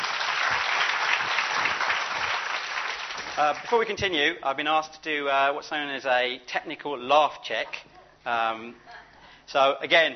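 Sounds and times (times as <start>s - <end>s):
audience applause: 0.0s - 3.8s
speech: 3.4s - 8.9s, 9.5s - 10.1s.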